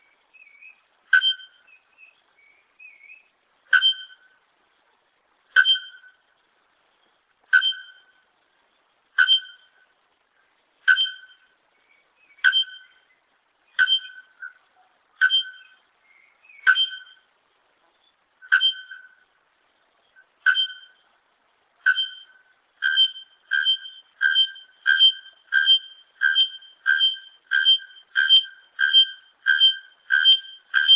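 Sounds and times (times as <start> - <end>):
bare-throated bellbird singing: 0.0 - 2.0, 2.8 - 4.4, 5.1 - 6.4, 7.3 - 8.4, 9.2 - 11.6, 12.2 - 17.3, 18.0 - 19.5, 20.2 - 30.9.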